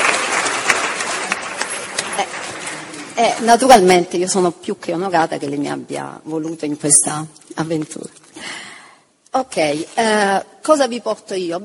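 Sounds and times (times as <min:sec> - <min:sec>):
audience applause: 0:00.0 - 0:03.4
speech: 0:03.2 - 0:08.5, 0:09.4 - 0:11.6.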